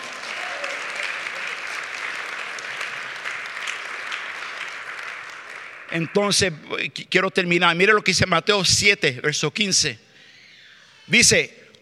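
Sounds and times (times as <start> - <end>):
crowd applause: 0.0 - 6.5
speech: 5.9 - 10.0, 11.1 - 11.8.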